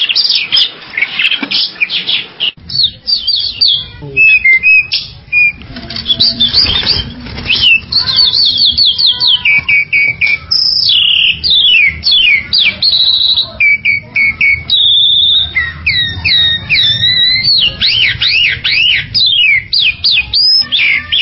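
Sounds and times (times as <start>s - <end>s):
Bali myna song: 1.0s - 21.2s.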